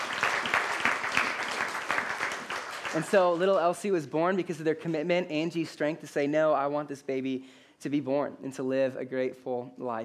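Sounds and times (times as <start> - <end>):
audience clapping: 0.0 - 3.8
speech: 2.9 - 10.0.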